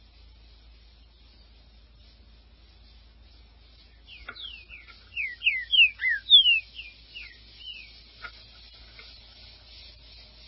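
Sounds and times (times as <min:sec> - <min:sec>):
Green-winged saltator song: 0:03.9 - 0:08.0.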